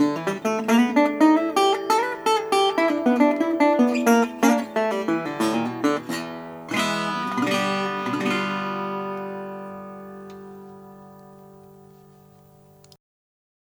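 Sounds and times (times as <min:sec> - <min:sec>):
National Triolian rosewood resonator guitar playing: 0:00.0 - 0:12.9.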